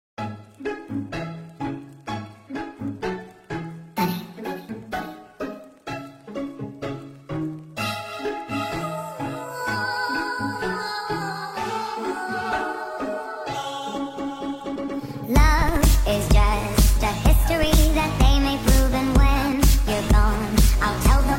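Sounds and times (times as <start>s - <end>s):
dance music: 4.0s - 5.7s, 7.8s - 21.3s.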